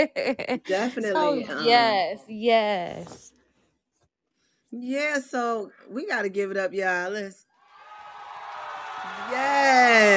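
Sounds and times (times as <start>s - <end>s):
speech: 0.0s - 3.4s, 4.7s - 7.5s, 9.1s - 10.1s
crowd cheering: 7.6s - 10.1s.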